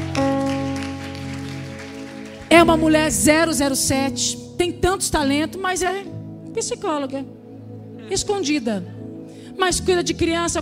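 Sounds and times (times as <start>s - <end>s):
audience applause: 0.0s - 2.8s
sustained keyboard chord: 0.0s - 8.5s
speech: 2.5s - 7.4s, 8.1s - 9.0s, 9.6s - 10.5s.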